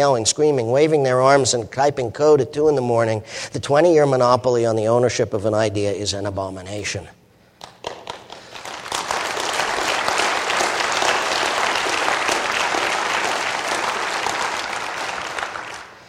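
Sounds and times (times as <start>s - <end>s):
speech: 0.0s - 7.2s
audience clapping: 7.6s - 16.0s.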